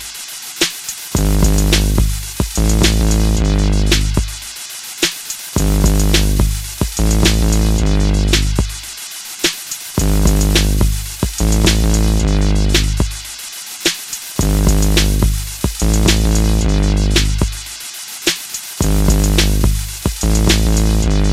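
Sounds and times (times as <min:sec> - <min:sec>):
beat on a microKORG synthesizer: 0:01.2 - 0:04.5, 0:05.6 - 0:09.0, 0:09.6 - 0:13.4, 0:14.4 - 0:17.7, 0:18.8 - 0:21.3.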